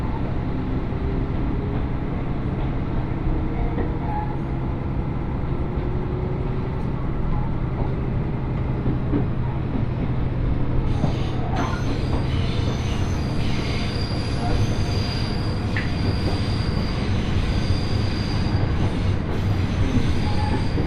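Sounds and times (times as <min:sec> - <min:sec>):
Mizushima Rinkai Railway train wheels rumbling: 0:00.0 - 0:20.8.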